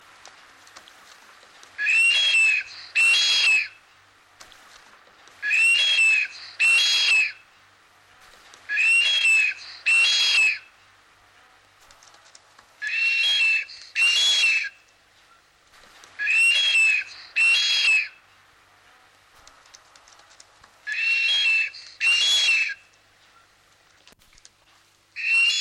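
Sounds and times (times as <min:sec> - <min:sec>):
blue duck giving breathy high whistled calls: 0:01.8 - 0:03.8, 0:05.4 - 0:07.4, 0:08.7 - 0:10.6, 0:12.8 - 0:14.8, 0:16.2 - 0:18.2, 0:20.9 - 0:22.8, 0:25.2 - 0:25.5.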